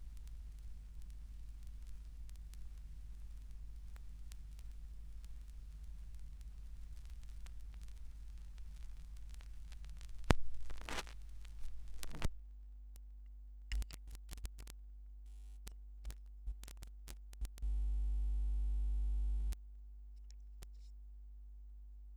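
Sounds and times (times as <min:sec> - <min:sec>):
vinyl record noise: 0:00.0 - 0:12.4, 0:13.7 - 0:14.8, 0:16.0 - 0:19.6.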